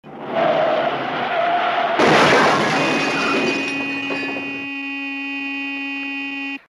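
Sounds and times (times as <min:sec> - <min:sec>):
crash: 0:00.1 - 0:04.7.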